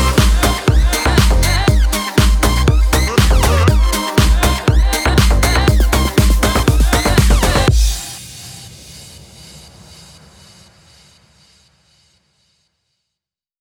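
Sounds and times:
long Spanish-language house remix: 0:00.0 - 0:08.6.

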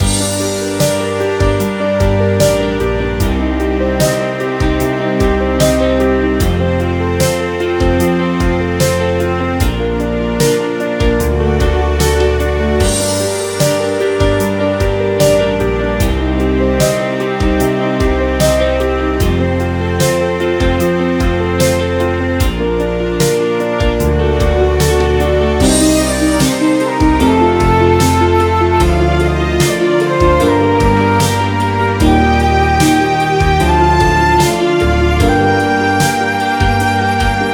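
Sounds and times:
dramatic guitar: 0:00.0 - 0:37.5
drums: 0:00.0 - 0:37.5.

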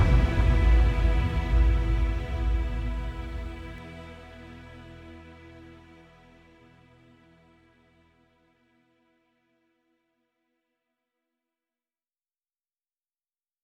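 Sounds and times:
tense violin: 0:00.0 - 0:07.9.

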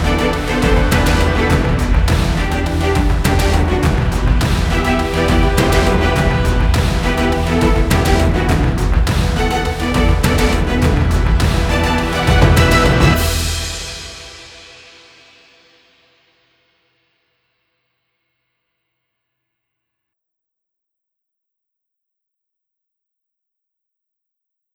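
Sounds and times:
tension music: 0:00.0 - 0:14.7.

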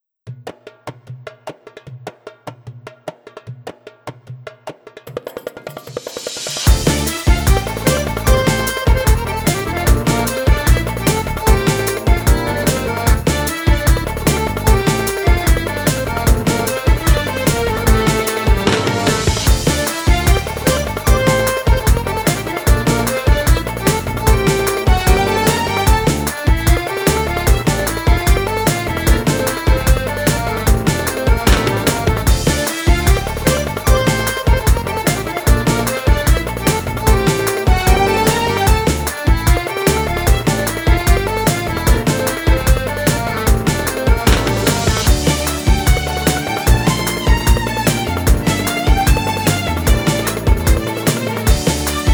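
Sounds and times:
arabesk oryantal music: 0:05.3 - 0:52.1.

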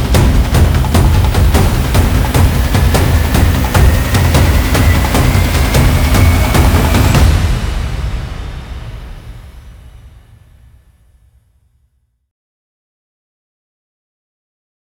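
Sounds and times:
tension drum composition: 0:00.0 - 0:11.1.

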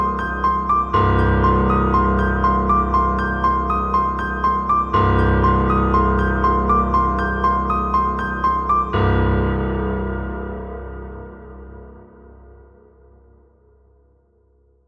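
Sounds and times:
tense music: 0:00.0 - 0:10.2.

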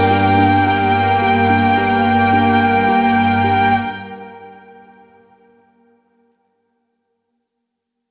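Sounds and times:
drums: 0:00.0 - 0:02.6
dramatic guitar: 0:00.0 - 0:04.0.

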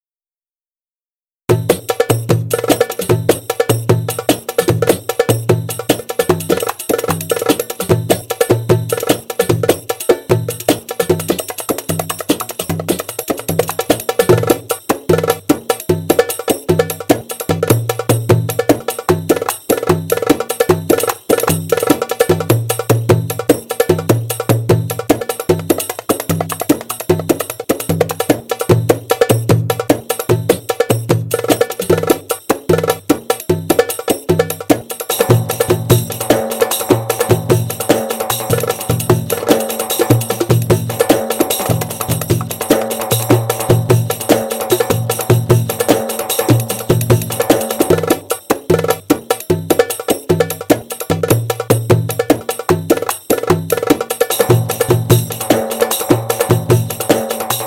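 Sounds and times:
darbuka show drumming: 0:01.5 - 0:57.6.

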